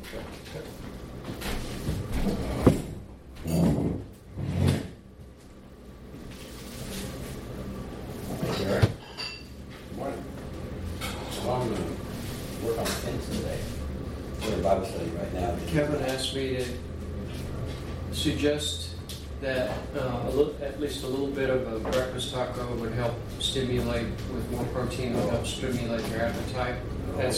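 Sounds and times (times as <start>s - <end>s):
kitchen noise: 0.0s - 27.3s
speech: 0.1s - 0.9s, 18.2s - 18.8s, 19.4s - 27.3s
crockery and utensils clinking while dishes are washed: 8.4s - 9.6s.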